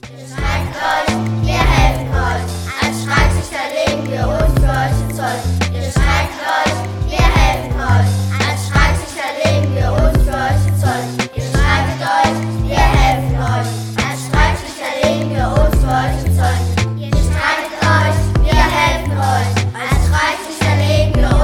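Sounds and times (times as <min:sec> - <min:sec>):
rap refrain: 0:00.0 - 0:21.4.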